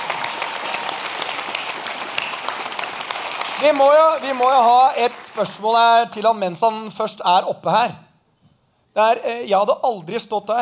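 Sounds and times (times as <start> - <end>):
audience applause: 0.0 - 6.0
speech: 3.6 - 8.0, 9.0 - 10.6.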